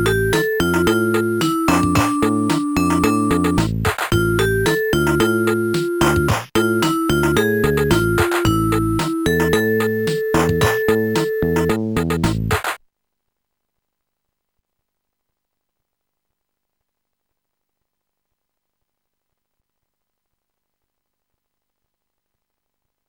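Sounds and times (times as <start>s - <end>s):
latin music: 0.0s - 12.6s.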